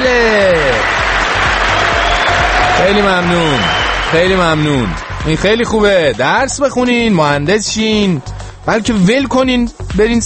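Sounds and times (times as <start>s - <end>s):
loud applause for a speaker: 0.0s - 6.1s
speech: 2.9s - 10.2s.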